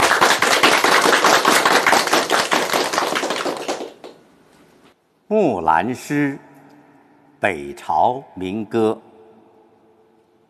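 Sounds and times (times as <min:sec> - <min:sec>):
audience applause: 0:00.0 - 0:04.2
speech: 0:05.3 - 0:06.5, 0:07.4 - 0:09.1.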